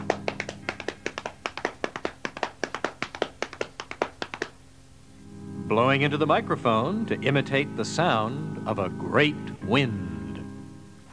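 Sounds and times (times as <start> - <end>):
hands slapping legs imitating horse hooves: 0.0 - 4.6
speech: 5.7 - 10.1.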